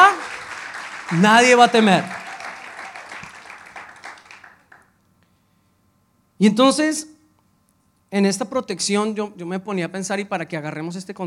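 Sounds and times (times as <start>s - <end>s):
crowd applause: 0.0s - 4.9s
speech: 1.1s - 2.2s, 6.4s - 7.2s, 8.1s - 11.2s.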